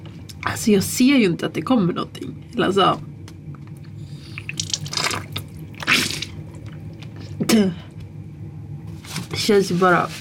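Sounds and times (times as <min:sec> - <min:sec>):
low steady hum: 0:00.0 - 0:10.1
speech: 0:00.5 - 0:03.1, 0:07.5 - 0:07.8, 0:09.5 - 0:10.1
nasal saltwater rinse gurgling and splashing: 0:04.3 - 0:06.7.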